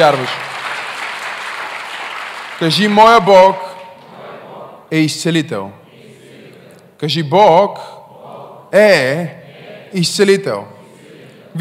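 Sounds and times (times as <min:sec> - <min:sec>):
speech: 0:00.0 - 0:00.5, 0:02.6 - 0:03.6, 0:04.9 - 0:05.8, 0:07.0 - 0:08.0, 0:08.7 - 0:10.8
audience applause: 0:00.0 - 0:03.2.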